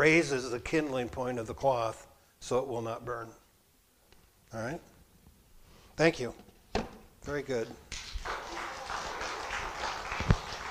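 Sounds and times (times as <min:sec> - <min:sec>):
speech: 0:00.0 - 0:03.4, 0:04.5 - 0:04.9, 0:06.0 - 0:06.5, 0:07.2 - 0:08.4
audience applause: 0:07.9 - 0:10.6.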